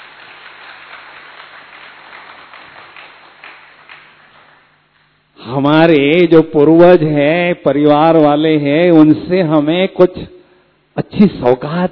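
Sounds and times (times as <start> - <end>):
audience clapping: 0.0 - 4.7
speech: 5.5 - 10.4, 11.0 - 11.8.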